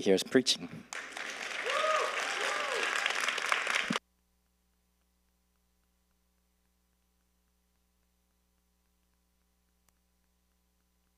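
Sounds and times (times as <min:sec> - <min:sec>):
audience applause: 0:00.9 - 0:04.0.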